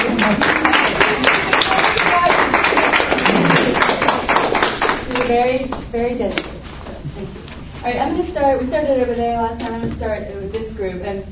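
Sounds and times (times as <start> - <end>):
audience applause: 0.0 - 5.2
speech: 0.3 - 0.6, 5.3 - 11.2.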